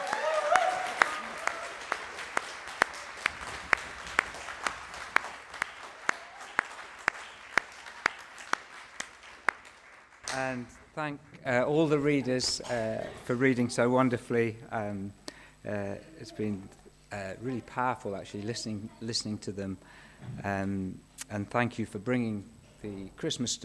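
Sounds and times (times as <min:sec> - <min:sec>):
audience applause: 0:00.0 - 0:12.7
speech: 0:10.5 - 0:23.6.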